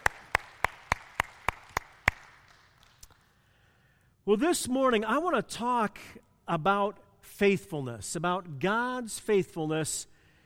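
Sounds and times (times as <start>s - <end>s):
audience applause: 0.0s - 3.1s
speech: 4.2s - 10.1s.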